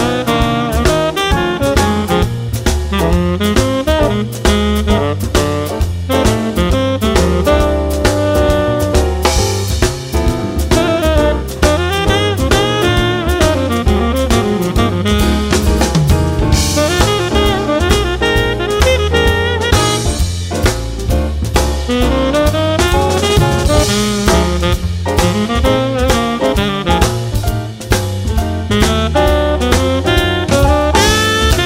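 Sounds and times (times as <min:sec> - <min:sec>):
jazz blues with tenor sax soloist: 0:00.0 - 0:31.6.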